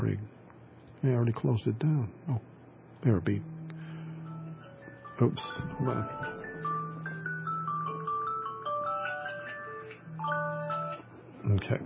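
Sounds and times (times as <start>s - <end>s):
speech: 1.0s - 3.5s, 5.2s - 6.4s, 11.5s - 11.8s
low droning tone: 3.3s - 4.7s, 5.4s - 8.4s
personal alarm playing a bright electronic melody: 3.3s - 11.6s.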